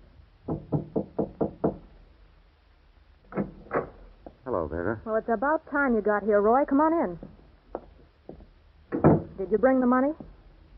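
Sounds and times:
knocking on a door at the end of the corridor: 0:00.4 - 0:01.9, 0:07.2 - 0:09.4
speech: 0:04.7 - 0:07.3, 0:09.5 - 0:10.3.

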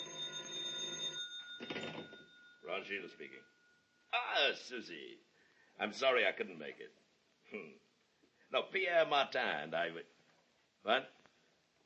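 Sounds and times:
telephone bell ringing: 0:00.0 - 0:02.7
speech: 0:02.8 - 0:07.8, 0:08.5 - 0:10.1, 0:10.8 - 0:11.2.

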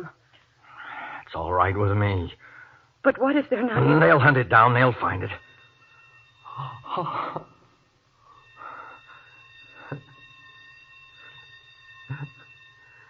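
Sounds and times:
speech: 0:01.3 - 0:05.4, 0:06.6 - 0:07.5
sprinkler alarm bell ringing in basement: 0:03.6 - 0:13.0.

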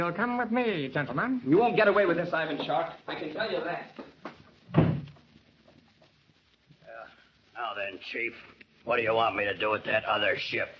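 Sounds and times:
speech: 0:00.0 - 0:04.1, 0:07.6 - 0:10.7
door shutting with a heavy thud: 0:04.7 - 0:05.2.

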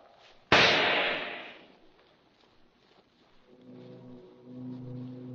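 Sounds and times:
pistol shot: 0:00.5 - 0:01.6.

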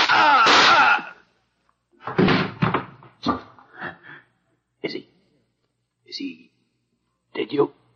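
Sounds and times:
gunshot: 0:00.0 - 0:01.0, 0:02.2 - 0:03.0.

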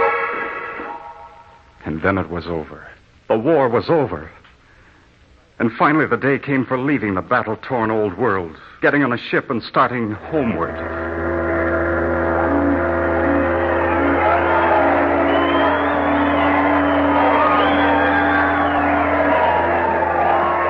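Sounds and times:
speech: 0:02.0 - 0:04.4, 0:05.6 - 0:11.1
crowd shouting and cheering: 0:10.5 - 0:20.6.

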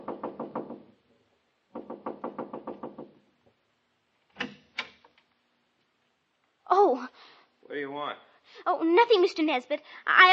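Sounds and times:
knocking on a wooden door: 0:00.0 - 0:01.0, 0:01.7 - 0:03.3
speech: 0:06.8 - 0:10.3.

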